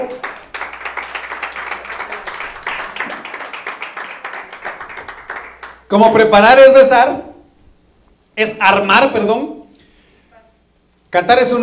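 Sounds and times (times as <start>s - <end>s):
audience clapping: 0.0s - 5.9s
speech: 5.9s - 7.3s, 8.4s - 9.5s, 11.1s - 11.6s.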